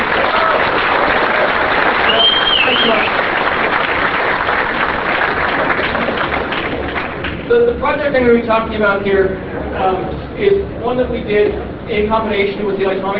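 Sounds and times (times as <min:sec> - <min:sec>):
audience applause: 0:00.0 - 0:07.5
speech: 0:08.0 - 0:13.1.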